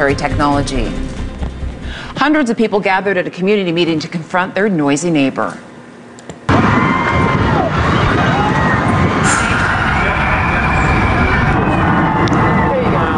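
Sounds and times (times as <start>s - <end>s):
speech: 0.0s - 1.2s, 1.9s - 5.7s
roller coaster riders screaming: 6.5s - 13.1s
rushing, rumbling roar: 6.5s - 13.1s.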